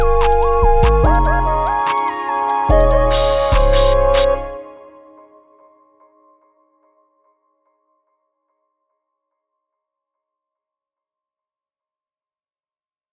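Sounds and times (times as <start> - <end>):
plugg beat loop: 0.0 - 4.5.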